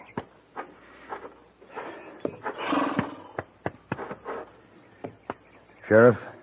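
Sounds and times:
hooves stamping and kicking: 0:00.0 - 0:06.4
agitated horse snorting: 0:01.8 - 0:03.4
speech: 0:05.9 - 0:06.3.

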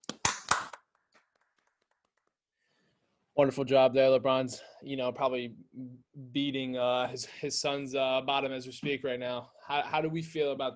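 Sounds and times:
hand clapping: 0:00.0 - 0:02.5
speech: 0:03.4 - 0:10.7.

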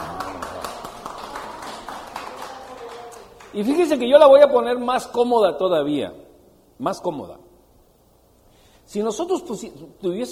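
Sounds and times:
audience applause: 0:00.0 - 0:03.6
speech: 0:03.5 - 0:06.2, 0:06.8 - 0:07.4, 0:08.9 - 0:10.3.

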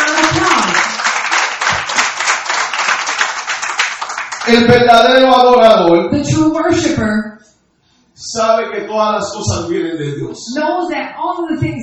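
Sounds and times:
audience applause: 0:00.0 - 0:04.7
speech: 0:04.5 - 0:07.4, 0:08.2 - 0:11.8.

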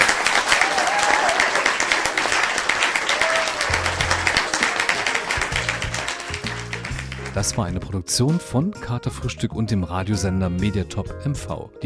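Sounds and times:
audience applause: 0:00.0 - 0:07.5
speech: 0:07.4 - 0:11.8.

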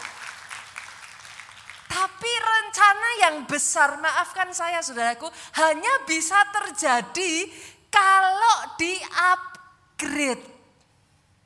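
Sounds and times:
audience applauding: 0:00.0 - 0:01.9
speech: 0:02.2 - 0:10.5.

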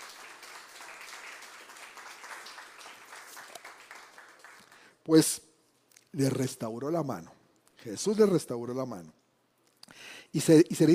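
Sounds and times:
audience applause: 0:00.0 - 0:04.9
speech: 0:05.1 - 0:05.4, 0:06.1 - 0:09.2, 0:10.3 - 0:10.9.

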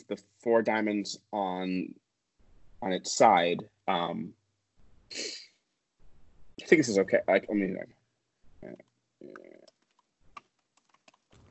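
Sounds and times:
speech: 0:00.0 - 0:02.0, 0:02.8 - 0:04.4, 0:05.1 - 0:05.4, 0:06.6 - 0:08.0, 0:08.6 - 0:09.6
typing on a computer keyboard: 0:09.3 - 0:11.4.

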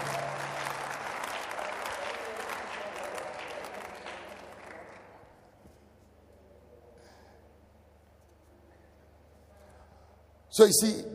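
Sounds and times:
audience clapping and applauding: 0:00.0 - 0:05.5
speech: 0:10.6 - 0:11.1.

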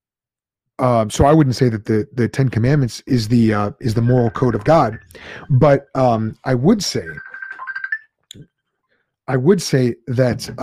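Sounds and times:
speech: 0:00.8 - 0:07.3, 0:09.3 - 0:10.6
phone ringing with an incoming messenger call: 0:03.9 - 0:05.6, 0:06.6 - 0:08.1.

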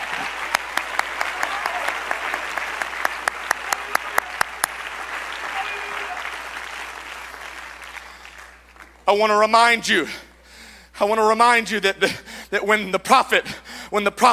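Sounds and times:
audience clapping hands: 0:00.0 - 0:09.4
speech: 0:09.1 - 0:10.2, 0:11.0 - 0:14.3.

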